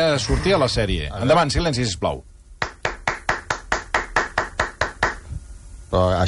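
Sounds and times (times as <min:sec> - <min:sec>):
speech: 0:00.0 - 0:02.3, 0:05.9 - 0:06.2
hands clapping: 0:02.6 - 0:05.2.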